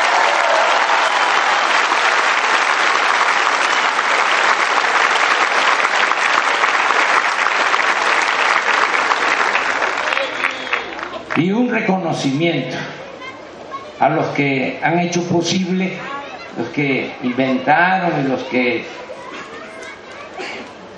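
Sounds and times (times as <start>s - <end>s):
audience applause for the independent press of Mexico: 0.0s - 11.6s
speech: 11.4s - 12.9s, 14.0s - 19.0s.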